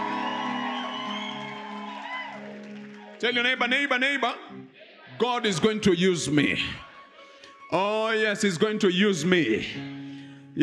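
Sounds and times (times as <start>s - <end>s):
audience shouting: 0.0s - 2.7s
audience cheering: 0.0s - 4.0s
speech: 3.2s - 4.6s, 5.2s - 6.9s, 7.7s - 10.0s.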